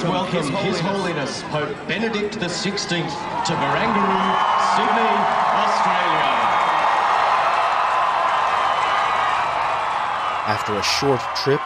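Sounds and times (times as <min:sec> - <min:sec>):
speech: 0:00.0 - 0:06.4, 0:10.5 - 0:11.6
young pilgrims cheering Pope Benedict XVI at Barangaroo, Sydney, World Youth Day 2008: 0:02.7 - 0:11.6.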